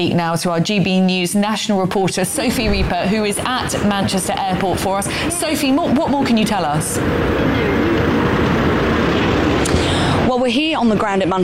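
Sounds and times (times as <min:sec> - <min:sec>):
speech: 0:00.0 - 0:07.8, 0:10.3 - 0:11.4
aircraft noise at Manchester Airport: 0:01.8 - 0:11.4.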